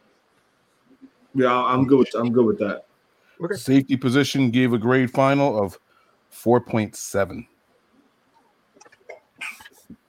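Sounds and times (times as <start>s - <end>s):
faint murmurs and mouth noises: 0.0s - 3.7s, 7.4s - 10.0s
speech: 1.4s - 7.5s
person sneezing: 9.1s - 10.0s.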